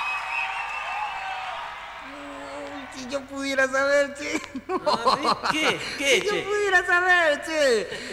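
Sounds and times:
live audience applause: 0.0s - 3.7s
speech: 3.0s - 8.1s
laughter: 4.1s - 6.8s.

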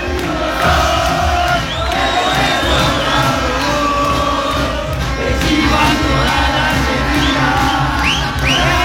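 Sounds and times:
football fans chanting and cheering while celebrating a title: 0.0s - 8.8s.

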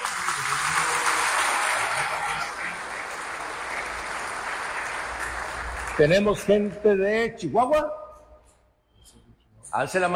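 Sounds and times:
crowd applauding: 0.0s - 6.8s
speech: 6.0s - 8.0s, 9.7s - 10.1s.

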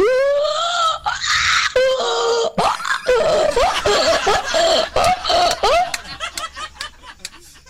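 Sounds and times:
man imitating a donkey braying: 0.0s - 5.9s
laughter: 2.8s - 7.6s.

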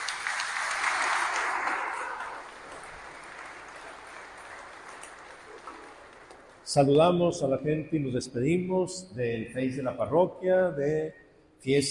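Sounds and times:
audience clapping at a parish festival raffle: 0.0s - 7.2s
speech: 6.7s - 11.9s.

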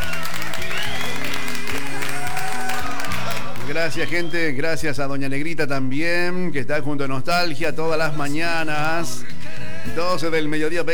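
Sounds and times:
audience applause: 0.0s - 4.4s
speech: 3.8s - 10.9s.

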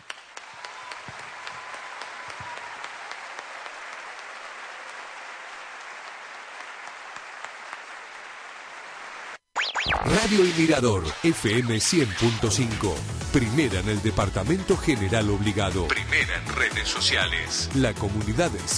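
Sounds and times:
crowd applauding: 0.0s - 9.4s
speech: 9.9s - 18.7s.

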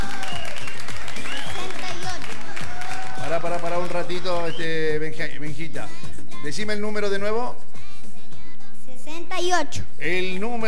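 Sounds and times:
audience applause: 0.0s - 4.7s
speech: 3.4s - 7.6s, 9.3s - 10.6s.

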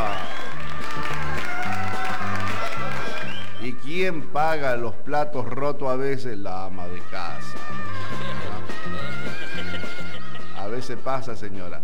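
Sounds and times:
crowd applause: 0.0s - 3.6s
speech: 3.9s - 8.1s, 10.7s - 11.8s
laughter: 8.8s - 10.9s.

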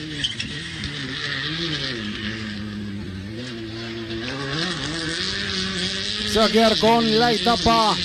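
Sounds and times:
rally race car engine accelerating: 0.0s - 8.0s
speech: 6.3s - 8.0s.

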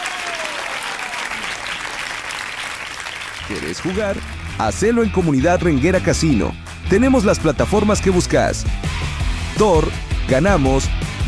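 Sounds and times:
audience applause: 0.0s - 5.0s
speech: 3.5s - 11.1s.

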